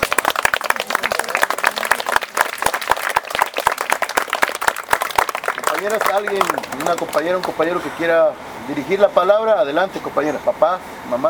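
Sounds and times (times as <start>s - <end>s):
audience applause: 0.0s - 7.7s
speech: 5.8s - 11.2s.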